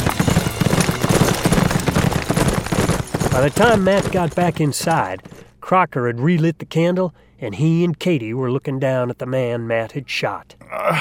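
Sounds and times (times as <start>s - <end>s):
horses galloping: 0.0s - 5.5s
speech: 3.4s - 10.9s.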